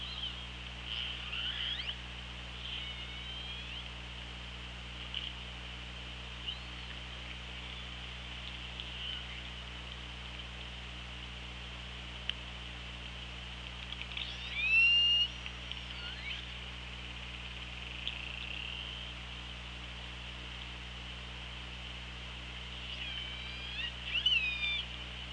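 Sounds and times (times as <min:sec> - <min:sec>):
hiss and hum: 0:00.0 - 0:25.3
orca squealing call: 0:00.9 - 0:02.0, 0:02.6 - 0:03.8, 0:14.2 - 0:15.3, 0:22.8 - 0:24.9
faint clicks: 0:05.0 - 0:05.5, 0:08.3 - 0:10.7, 0:13.0 - 0:14.4, 0:15.4 - 0:16.0, 0:17.2 - 0:18.6.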